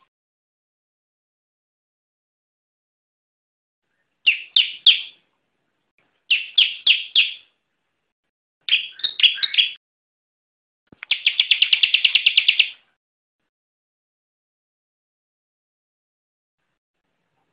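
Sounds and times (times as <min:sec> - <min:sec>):
bar-winged prinia song with rapid trill and ringing chirps: 0:04.2 - 0:05.2, 0:06.3 - 0:07.5, 0:08.7 - 0:09.8, 0:11.0 - 0:12.8.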